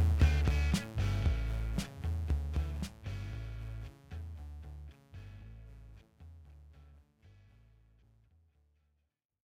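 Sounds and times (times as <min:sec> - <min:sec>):
instrumental music: 0:00.0 - 0:07.1.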